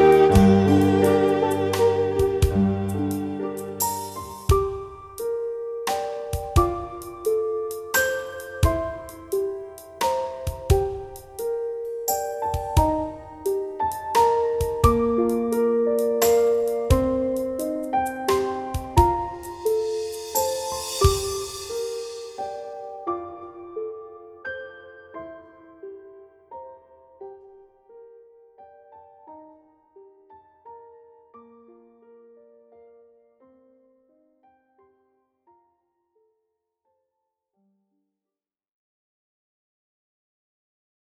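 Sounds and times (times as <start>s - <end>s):
slow waltz music: 0.0s - 28.4s.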